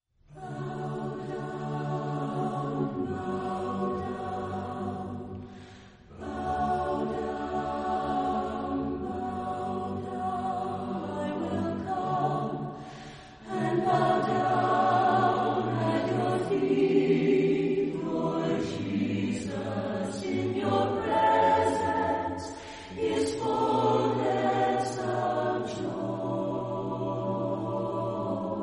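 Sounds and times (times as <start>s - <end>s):
a cappella chorale singing: 0.3s - 28.6s.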